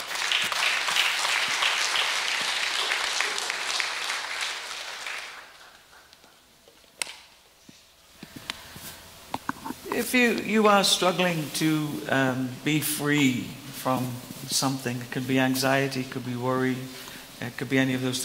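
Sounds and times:
scattered sharp claps or knocks: 0.0 - 6.4
church congregation applauding new members at a Sunday service: 0.0 - 6.6
speech: 10.0 - 18.2.

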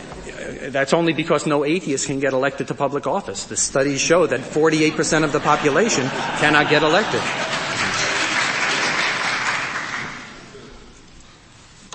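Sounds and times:
laughter: 0.0 - 0.8, 4.1 - 10.7
speech: 0.5 - 7.5
courtroom audience clapping: 5.1 - 10.5.

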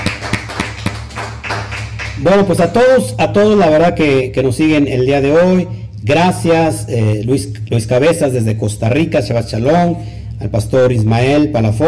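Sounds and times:
audience applause for Spain: 0.0 - 2.3
speech: 2.2 - 11.8.

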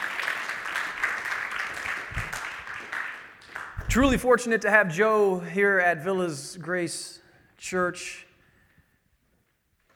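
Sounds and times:
crowd applauding: 0.0 - 4.2
speech: 3.9 - 8.3.

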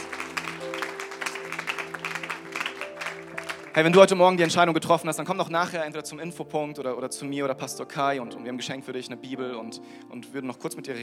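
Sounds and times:
audience applauding: 0.0 - 4.7
speech: 3.8 - 11.0.

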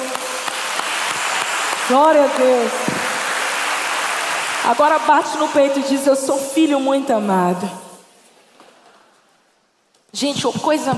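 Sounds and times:
audience applause: 0.0 - 5.8
speech: 1.9 - 2.8, 4.6 - 7.8, 10.2 - 10.9.

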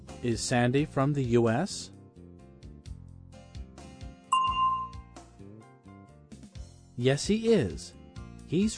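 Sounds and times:
speech: 0.2 - 1.9, 7.0 - 8.7
bell signalling time to answer: 4.3 - 5.0.

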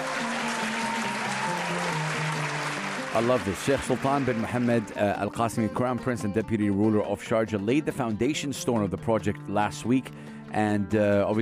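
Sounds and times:
applause: 0.0 - 5.9
speech: 3.1 - 11.4.

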